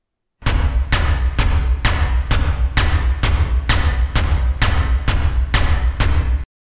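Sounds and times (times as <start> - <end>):
synthesized kick drum: 0.4 - 6.5
synthesized clap: 1.0 - 6.4.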